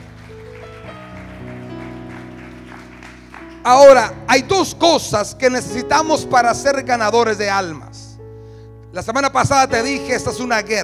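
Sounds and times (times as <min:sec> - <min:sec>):
audience applauding: 0:00.0 - 0:04.0
speech: 0:03.6 - 0:08.0, 0:08.9 - 0:10.8.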